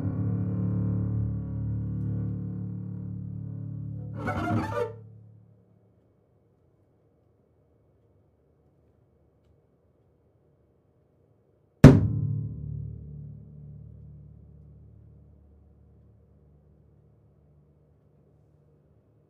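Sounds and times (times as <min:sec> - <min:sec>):
double bass playing contemporary music: 0:00.0 - 0:05.4, 0:11.9 - 0:16.1.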